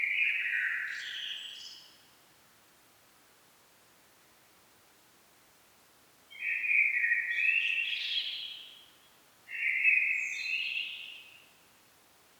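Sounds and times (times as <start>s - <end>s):
Common blackbird song: 0.0s - 1.9s, 6.3s - 11.6s.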